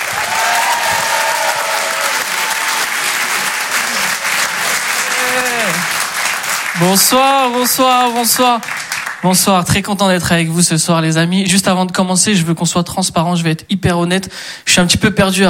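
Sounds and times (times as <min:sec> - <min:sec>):
people cheering: 0:00.0 - 0:09.2
comedy club audience applauding a comedian being introduced: 0:00.0 - 0:09.9
speech: 0:06.8 - 0:15.4.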